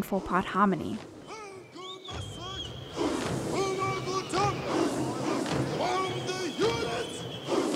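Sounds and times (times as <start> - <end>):
speech: 0.0 - 1.2
whistling in a toyi-toyi protest march: 1.2 - 5.0, 5.8 - 7.7
protesters chanting in a toyi-toyi march: 1.2 - 7.7
protesters singing in a toyi-toyi march: 1.2 - 7.7
protesters clapping in a toyi-toyi march: 3.0 - 7.7.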